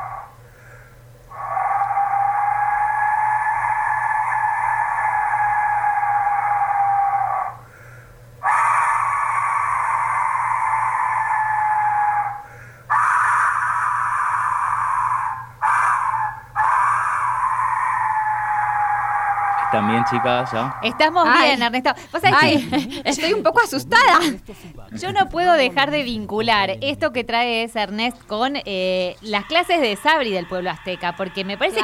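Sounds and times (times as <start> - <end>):
Aztec death whistle: 0.0 - 21.6, 29.2 - 31.8
laughter: 19.7 - 26.9
speech: 19.8 - 31.8.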